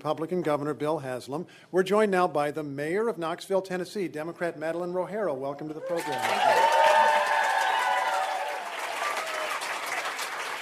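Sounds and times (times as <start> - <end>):
speech: 0.0 - 6.8
audience applause: 5.9 - 10.5.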